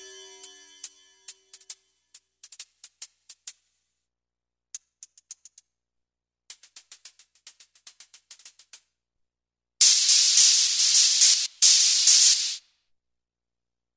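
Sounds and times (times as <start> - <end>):
drum medley on Alesis Micron synthesizer: 9.8 - 12.6.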